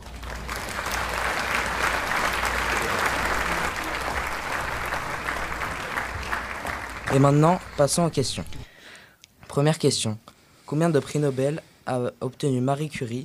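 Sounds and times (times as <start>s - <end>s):
audience applause for contestants at a radio quiz game show: 0.0s - 8.2s
speech: 7.1s - 8.6s, 9.6s - 13.2s.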